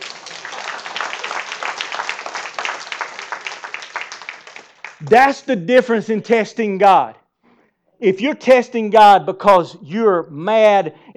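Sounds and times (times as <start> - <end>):
audience clapping: 0.0 - 5.4
speech: 5.0 - 7.2, 8.0 - 11.1.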